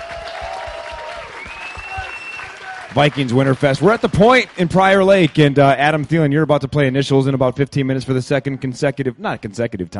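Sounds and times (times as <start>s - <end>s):
audience applause at a Minnesota Vikings fan event: 0.0s - 5.7s
faint high whistle-like tone: 1.4s - 2.5s
speech: 2.9s - 9.9s.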